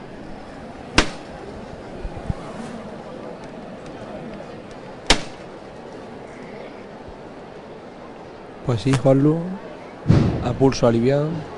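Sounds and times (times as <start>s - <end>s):
crowd murmur: 0.0s - 11.5s
llamador knocker striking a Holy Week float: 1.0s - 1.3s, 5.0s - 5.5s
speech: 8.7s - 9.6s, 10.5s - 11.5s.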